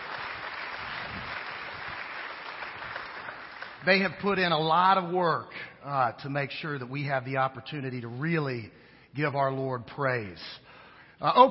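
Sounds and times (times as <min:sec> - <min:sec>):
church congregation applauding the praise and worship team: 0:00.0 - 0:04.7
speech: 0:03.8 - 0:10.6, 0:11.2 - 0:11.5.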